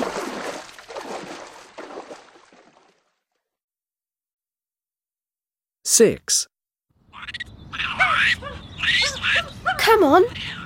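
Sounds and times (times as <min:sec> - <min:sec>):
crocodile running into water, splashing: 0:00.0 - 0:03.2
speech: 0:05.9 - 0:06.5, 0:07.2 - 0:10.6.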